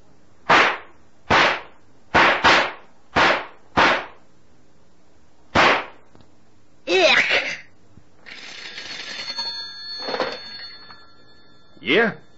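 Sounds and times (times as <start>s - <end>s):
gunshots fired at a rattlesnake: 0.5s - 4.2s, 5.5s - 6.0s
speech: 11.9s - 12.2s.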